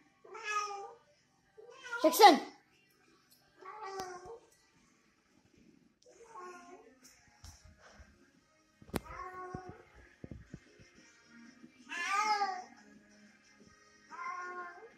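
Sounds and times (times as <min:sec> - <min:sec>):
cat calling another cat: 0:00.3 - 0:01.0, 0:01.7 - 0:02.2, 0:03.6 - 0:04.4, 0:09.0 - 0:09.9, 0:11.9 - 0:12.7, 0:14.1 - 0:14.9.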